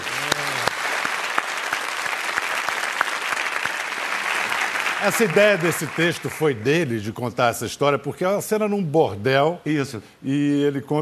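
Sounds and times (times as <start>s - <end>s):
audience applause: 0.0s - 6.7s
speech: 5.0s - 10.9s.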